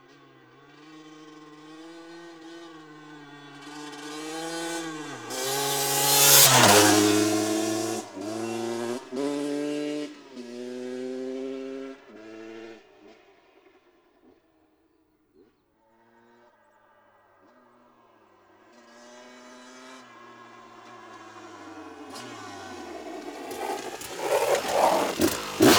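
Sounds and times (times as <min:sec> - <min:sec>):
KTM EXC 650 motorcycle engine: 0:02.4 - 0:11.8, 0:18.8 - 0:25.7.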